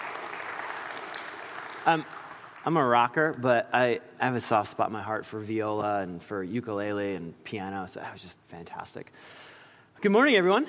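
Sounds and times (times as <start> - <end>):
audience clapping for the band: 0.0 - 3.4
speech: 1.8 - 10.6.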